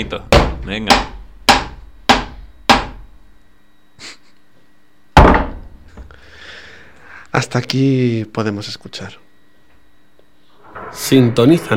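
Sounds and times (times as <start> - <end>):
speech: 0.0 - 1.1, 7.4 - 9.2, 11.1 - 11.7
hammer striking a plastic chair: 0.3 - 3.0, 5.2 - 5.6.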